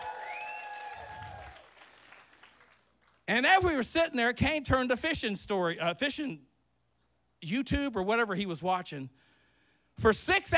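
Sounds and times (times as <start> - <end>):
audience clapping: 0.0 - 3.2
speech: 3.3 - 6.5, 7.4 - 9.2, 10.0 - 10.5.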